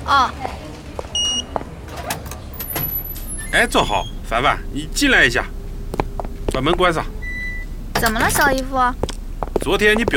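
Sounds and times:
low hum: 0:00.0 - 0:10.1
speech: 0:00.1 - 0:00.6, 0:03.5 - 0:05.6, 0:06.6 - 0:07.2, 0:08.0 - 0:10.1
staff access card reader beep unlocking a door: 0:01.2 - 0:04.2, 0:07.2 - 0:08.3.

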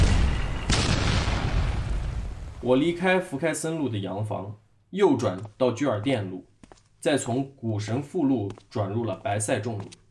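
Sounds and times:
bomb explosion: 0:00.0 - 0:02.9
speech: 0:02.6 - 0:10.0.

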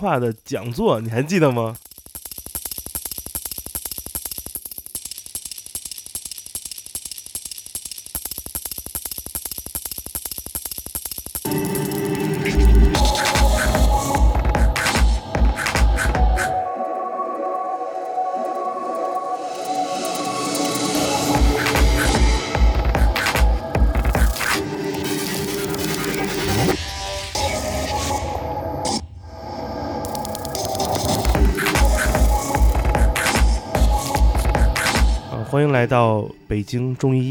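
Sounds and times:
electronic music track: 0:00.0 - 0:01.8, 0:11.5 - 0:37.2
speech: 0:00.0 - 0:01.9, 0:36.6 - 0:37.2.

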